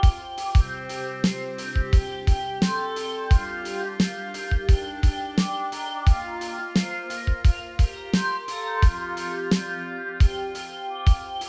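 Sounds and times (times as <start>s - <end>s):
ambient music loop: 0.0s - 11.4s.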